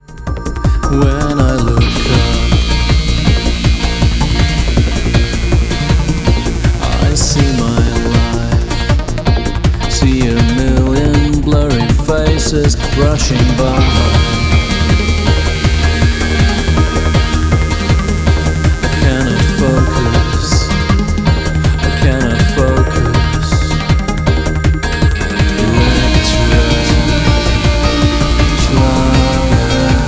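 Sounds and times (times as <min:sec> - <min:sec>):
electronic schlager music: 0:00.0 - 0:30.0.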